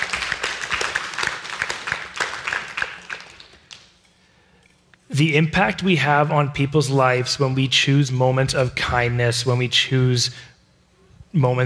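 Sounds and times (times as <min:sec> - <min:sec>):
audience applause: 0:00.0 - 0:03.8
speech: 0:05.2 - 0:10.5, 0:11.3 - 0:11.6.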